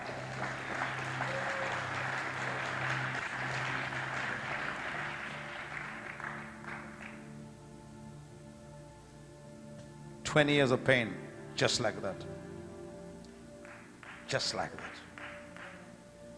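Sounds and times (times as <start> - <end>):
crowd clapping: 0.0 - 7.3, 13.6 - 15.9
speech: 10.3 - 12.5, 14.3 - 15.1.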